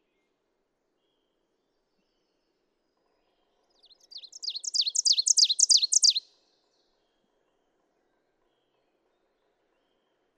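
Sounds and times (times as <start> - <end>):
Ovenbird song: 3.9 - 6.2.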